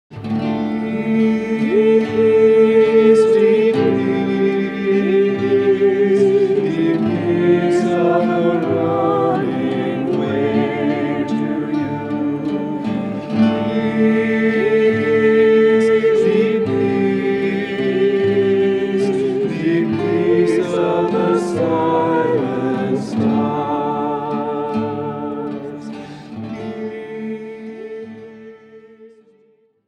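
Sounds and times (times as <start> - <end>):
peaceful music: 0.1 - 29.5.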